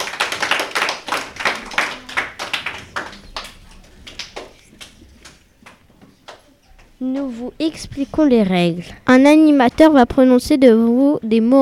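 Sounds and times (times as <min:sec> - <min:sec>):
audience applauding: 0:00.0 - 0:06.4
speech: 0:07.0 - 0:11.6.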